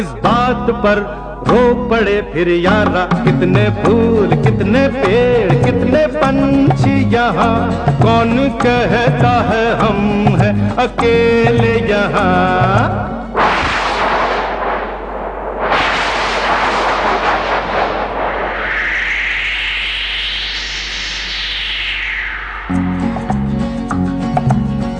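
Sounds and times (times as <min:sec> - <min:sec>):
speech: 0:00.0 - 0:13.2
rising whooshing sweep: 0:13.2 - 0:24.9
thunder rumbling: 0:13.3 - 0:21.3, 0:21.9 - 0:24.3.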